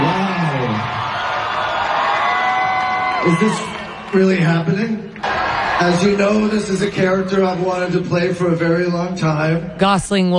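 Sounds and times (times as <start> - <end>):
crowd screaming and cheering at Marvel's Comic-Con panel: 0.0 - 8.2
speech: 3.2 - 10.3.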